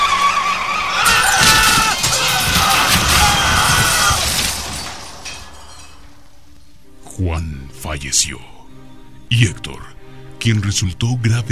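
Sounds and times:
car tires squealing in a skid: 0:00.0 - 0:05.6
car crashing and rolling over: 0:01.0 - 0:06.1
speech: 0:08.0 - 0:08.6, 0:09.3 - 0:11.5.

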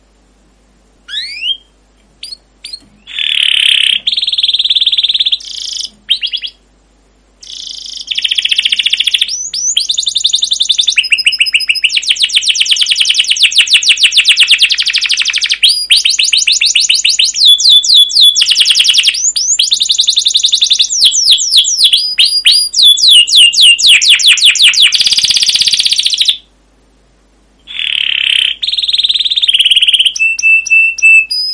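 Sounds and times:
canary singing: 0:01.0 - 0:06.7, 0:07.4 - 0:26.5, 0:27.6 - 0:31.5.

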